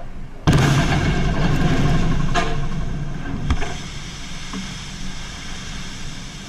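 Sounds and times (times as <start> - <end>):
10,000-pound TNT bombs exploding underwater: 0.4 - 6.4
water spray: 3.5 - 6.4.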